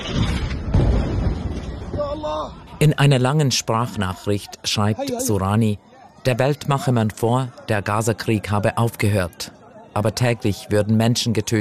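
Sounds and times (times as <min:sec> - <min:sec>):
deep rumbling boom of night-time explosions in a city: 0:00.0 - 0:02.6
speech: 0:02.2 - 0:11.6.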